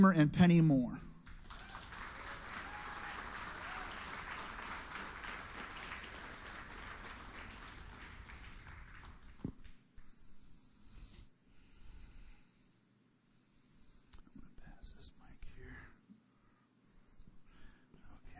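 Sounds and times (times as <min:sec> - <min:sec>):
speech: 0:00.0 - 0:01.0
audience applause: 0:01.2 - 0:09.8.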